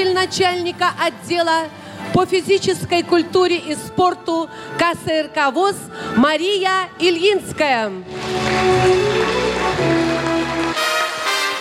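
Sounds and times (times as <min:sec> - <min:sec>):
speech: 0:00.0 - 0:09.0
audience applause: 0:08.1 - 0:11.5.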